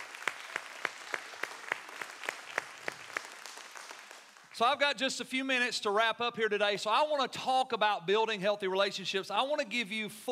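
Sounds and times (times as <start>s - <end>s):
audience applause: 0.0s - 4.5s
speech: 4.6s - 10.3s.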